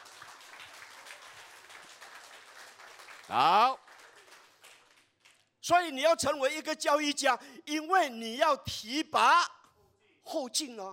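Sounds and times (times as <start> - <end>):
audience applause: 0.0 - 5.3
speech: 3.3 - 3.8, 5.7 - 9.6, 10.3 - 10.9.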